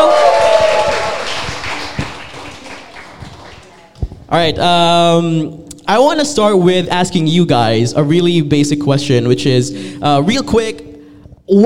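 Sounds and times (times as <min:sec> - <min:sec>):
round of applause: 0:00.0 - 0:04.0
speech: 0:04.3 - 0:10.9, 0:11.5 - 0:11.6.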